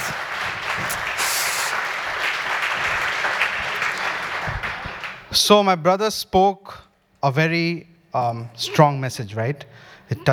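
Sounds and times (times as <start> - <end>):
audience applause: 0.0 - 5.4
speech: 5.4 - 10.3.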